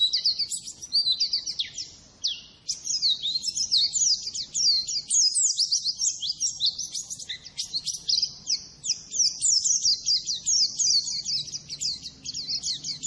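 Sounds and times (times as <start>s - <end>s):
white-eye singing nonstop: 0.0s - 13.0s.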